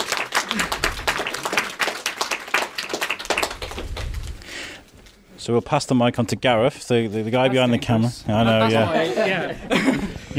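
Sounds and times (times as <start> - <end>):
audience applause: 0.0 - 4.9
speech: 0.5 - 0.8, 5.5 - 10.3
laughter: 8.3 - 10.3.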